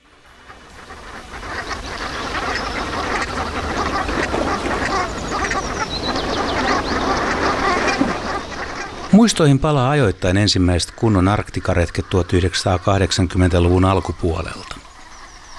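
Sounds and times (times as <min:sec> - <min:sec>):
large flock of brant geese calling: 0:00.0 - 0:15.5
speech: 0:09.2 - 0:14.7.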